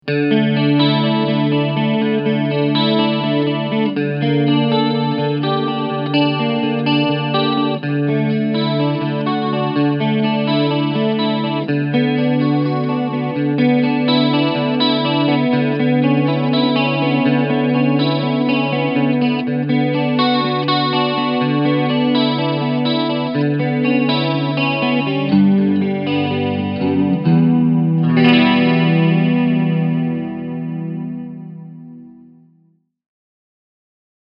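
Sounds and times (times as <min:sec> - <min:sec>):
clean chorus guitar tone through Mooer Hornet 30 amplifier: 0:00.0 - 0:32.8.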